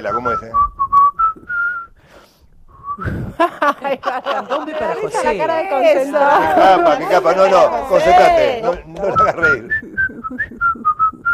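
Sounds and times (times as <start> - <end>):
speech: 0.0 - 0.8, 3.0 - 10.6
woman whistling a short tune: 0.2 - 2.0, 2.7 - 3.2, 9.7 - 11.3
laughter: 3.0 - 11.2.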